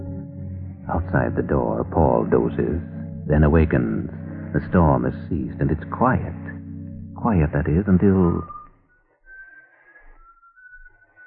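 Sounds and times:
soft low rumble: 0.0 - 8.6
eerie whistled tune: 0.0 - 11.2
speech: 0.9 - 6.6, 7.2 - 8.6.

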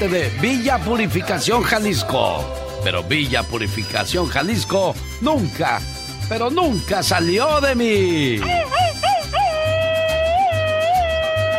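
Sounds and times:
speech: 0.0 - 8.8
machine-gun style Mexican grito yell: 8.4 - 11.5.

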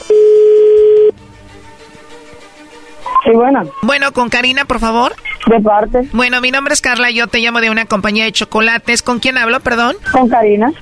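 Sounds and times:
telephone line ringing tone after dialing: 0.0 - 1.2
speech: 3.3 - 10.8.

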